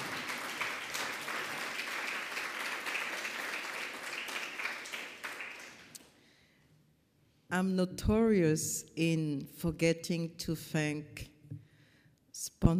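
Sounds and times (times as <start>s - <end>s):
audience applause: 0.0s - 6.0s
speech: 7.6s - 11.3s, 12.5s - 12.7s.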